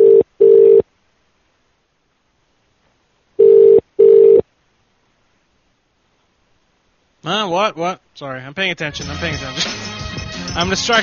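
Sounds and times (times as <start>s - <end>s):
telephone line beeps while placing a call: 0.0s - 0.8s, 3.4s - 4.4s
speech: 7.3s - 10.0s, 10.6s - 11.0s.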